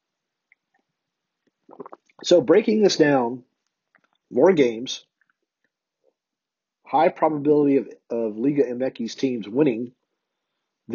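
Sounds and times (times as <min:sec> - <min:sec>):
person sipping coffee: 0:01.6 - 0:02.2
speech: 0:01.7 - 0:03.5, 0:04.3 - 0:05.1, 0:06.9 - 0:10.0.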